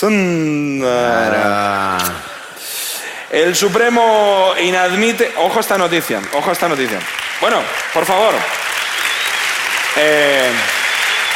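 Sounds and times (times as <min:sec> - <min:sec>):
speech: 0:00.0 - 0:01.8, 0:03.3 - 0:08.6, 0:10.0 - 0:10.8
descending vocal cry: 0:00.8 - 0:02.5
crowd applause, ovation: 0:04.0 - 0:11.3.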